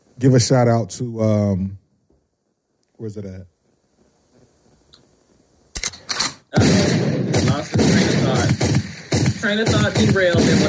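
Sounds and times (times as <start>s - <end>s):
speech: 0.2s - 1.8s, 3.0s - 3.5s, 6.5s - 8.8s, 9.4s - 10.6s
gunshot sound effect: 6.6s - 10.6s.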